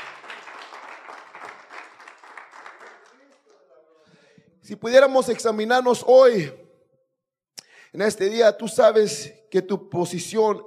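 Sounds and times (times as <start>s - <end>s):
applause: 0.0s - 3.8s
speech: 4.7s - 6.6s, 7.9s - 10.6s.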